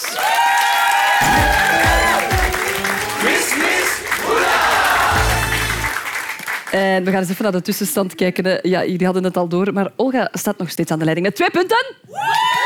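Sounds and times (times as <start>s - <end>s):
thunderous applause: 0.0s - 6.8s
speech: 6.8s - 12.6s.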